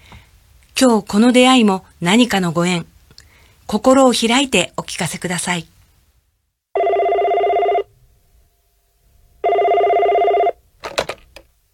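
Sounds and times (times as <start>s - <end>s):
speech: 0.8s - 2.9s, 3.7s - 5.7s
telephone bell ringing on an advice line: 6.8s - 7.9s, 9.4s - 10.6s.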